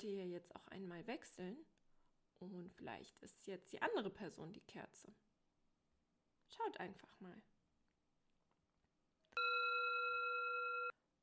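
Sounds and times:
speech: 0:00.0 - 0:01.7, 0:02.4 - 0:05.2, 0:06.5 - 0:07.5
doorbell ringing with a buzzing electronic tone: 0:09.4 - 0:10.9.

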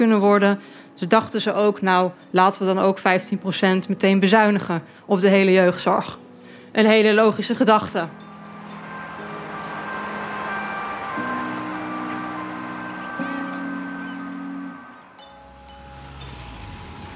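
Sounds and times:
speech: 0:00.0 - 0:08.2
sirens in the background: 0:08.1 - 0:15.2.

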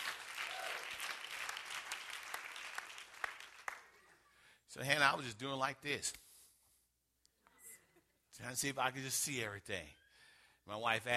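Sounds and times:
crowd clapping: 0:00.0 - 0:04.4
speech: 0:04.7 - 0:06.2, 0:08.4 - 0:10.0, 0:10.6 - 0:11.1.

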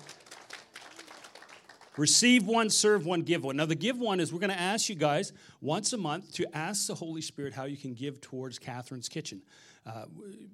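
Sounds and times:
audience clapping: 0:00.0 - 0:02.5
speech: 0:02.0 - 0:10.5.

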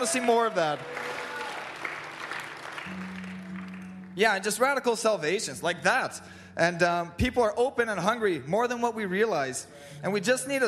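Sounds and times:
speech: 0:00.0 - 0:01.1, 0:02.8 - 0:03.1, 0:04.2 - 0:10.6
audience applause: 0:00.0 - 0:04.1.

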